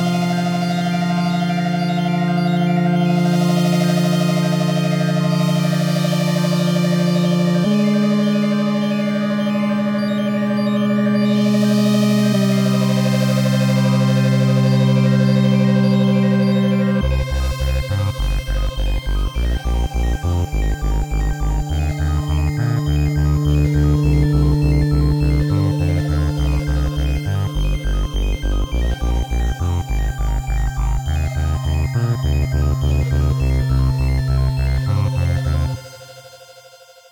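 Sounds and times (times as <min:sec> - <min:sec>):
saw and sine synth tones: 0:00.0 - 0:36.4.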